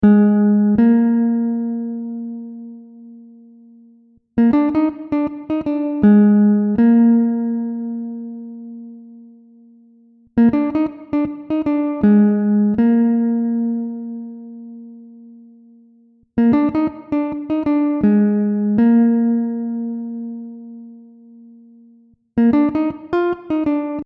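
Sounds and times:
instrumental music: 0.0 - 24.0.

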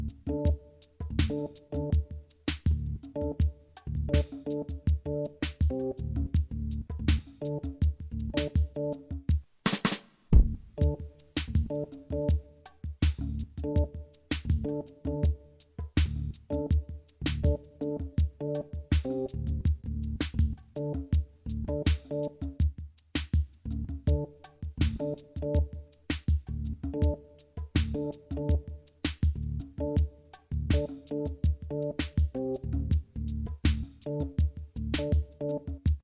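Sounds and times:
instrumental music: 0.0 - 36.0.

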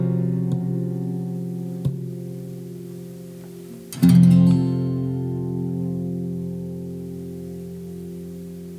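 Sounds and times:
guitar chords: 0.0 - 8.7.

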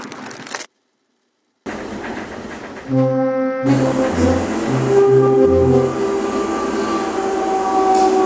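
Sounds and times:
soundscape: 2.8 - 8.1.

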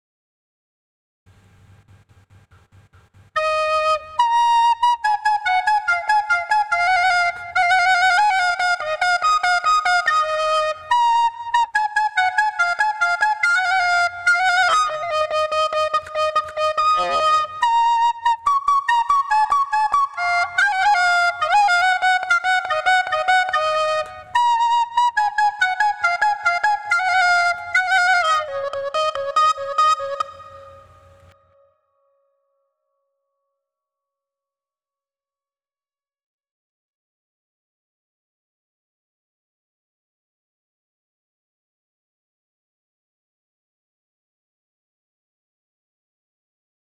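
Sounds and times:
folk music: 3.4 - 31.4.

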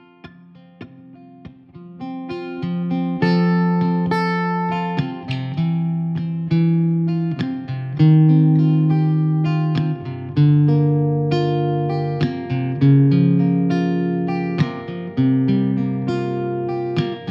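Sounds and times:
guitar cliche groove in F: 0.0 - 17.2.

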